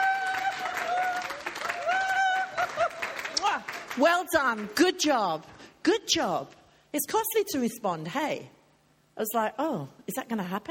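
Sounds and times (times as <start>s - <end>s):
audience applause: 0.0s - 4.0s
speech: 4.0s - 8.6s, 9.2s - 10.6s.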